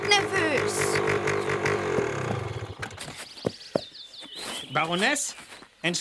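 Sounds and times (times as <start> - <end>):
motorcycle engine roaring past: 0.0 - 3.1
speech: 4.8 - 5.9.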